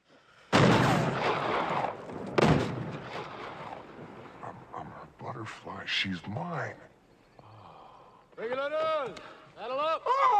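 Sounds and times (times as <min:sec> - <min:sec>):
gunshots in a film: 0:00.5 - 0:04.4
speech: 0:05.9 - 0:06.9, 0:08.4 - 0:10.3.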